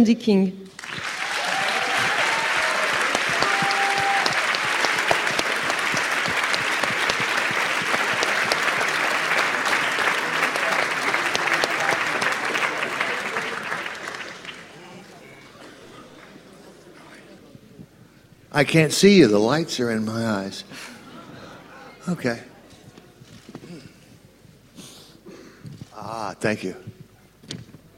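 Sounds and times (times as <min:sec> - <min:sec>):
speech: 0:00.0 - 0:00.6, 0:18.6 - 0:20.8, 0:22.1 - 0:22.5, 0:26.4 - 0:27.0
audience applause: 0:00.7 - 0:16.4.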